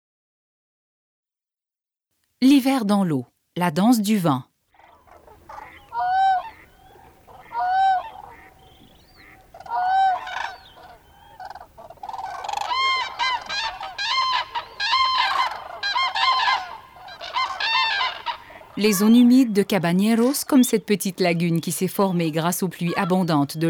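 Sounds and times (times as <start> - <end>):
speech: 2.4 - 4.5, 18.8 - 23.6
flock of wintering geese honking: 4.8 - 20.6, 22.9 - 23.5.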